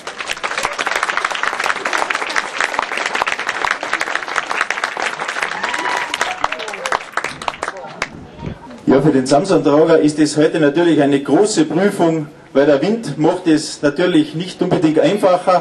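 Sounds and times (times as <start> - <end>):
crowd applauding: 0.0 - 8.5
speech: 8.9 - 15.5.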